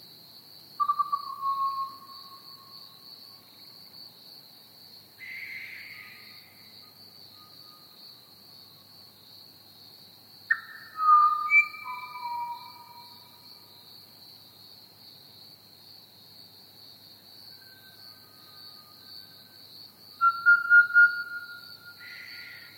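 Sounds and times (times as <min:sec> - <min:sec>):
Pied Butcherbird whistling: 0:10.5 - 0:12.9, 0:20.2 - 0:21.6.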